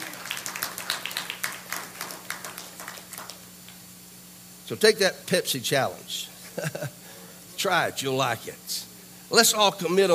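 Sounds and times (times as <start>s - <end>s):
audience clapping: 0.0s - 3.8s
faint low hum: 0.0s - 10.1s
speech: 4.7s - 7.0s, 7.6s - 10.1s
laughter: 6.4s - 7.0s.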